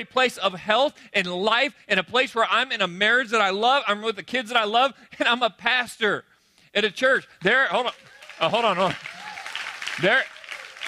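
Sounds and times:
speech: 0.0 - 9.1, 10.0 - 10.4
crowd clapping: 7.4 - 10.8.

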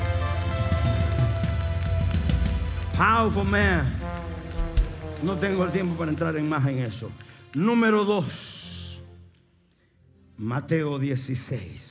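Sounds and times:
audience applause: 0.0 - 7.7
speech: 3.0 - 4.1, 5.2 - 8.5, 10.4 - 11.8.

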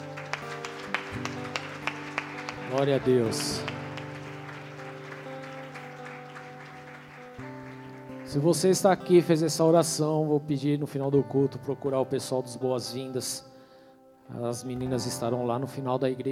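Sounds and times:
audience applause: 0.0 - 8.5
speech: 2.7 - 3.8, 8.3 - 13.5, 14.3 - 16.3.

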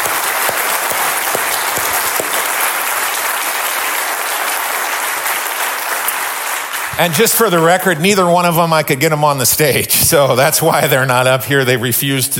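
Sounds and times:
audience applause: 0.0 - 8.0
speech: 7.0 - 12.3.

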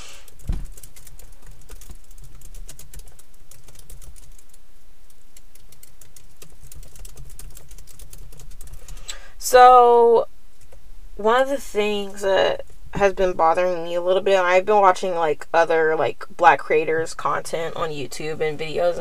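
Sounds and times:
typing on a computer keyboard: 0.2 - 4.6, 5.3 - 9.0
speech: 9.5 - 10.3, 11.2 - 18.9.

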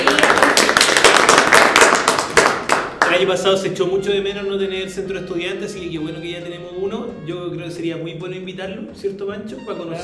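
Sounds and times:
crowd applauding: 0.0 - 3.3
speech: 3.2 - 10.0.

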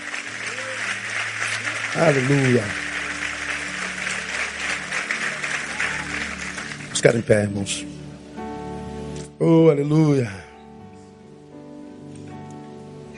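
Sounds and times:
audience applauding: 0.0 - 7.6
speech: 2.0 - 2.8, 7.0 - 8.0, 9.4 - 10.4.

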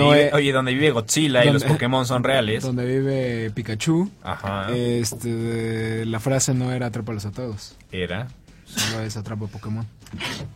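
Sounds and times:
speech: 0.0 - 10.5
sneeze: 8.7 - 9.1, 10.1 - 10.5.

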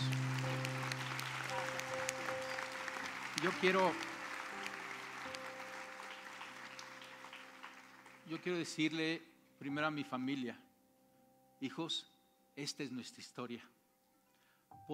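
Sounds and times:
audience applauding: 0.0 - 9.0
speech: 3.4 - 4.1, 8.3 - 10.6, 11.6 - 13.8.

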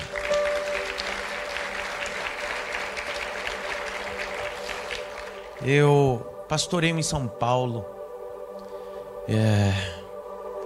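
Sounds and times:
audience applauding: 0.0 - 5.8
speech: 5.6 - 8.0, 9.3 - 10.0.

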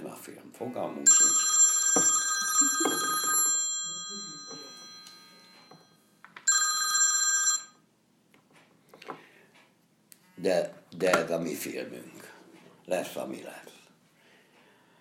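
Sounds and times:
speech: 0.6 - 1.6, 10.4 - 12.3, 12.9 - 13.7
telephone ringing: 1.1 - 7.9.

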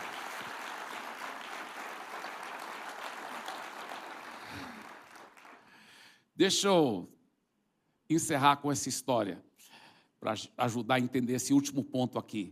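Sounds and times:
audience applause: 0.0 - 5.8
speech: 6.4 - 7.2, 8.1 - 9.5, 10.2 - 12.5.

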